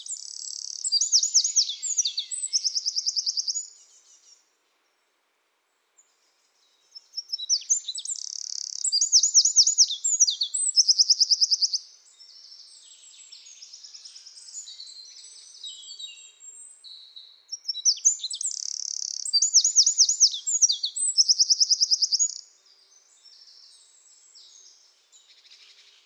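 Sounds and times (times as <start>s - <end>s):
Eurasian wren singing: 0.0s - 3.7s, 7.2s - 11.8s, 17.5s - 22.4s.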